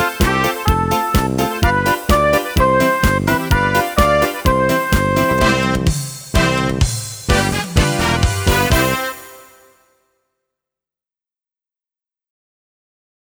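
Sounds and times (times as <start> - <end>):
karaoke singing: 0.0 - 9.5.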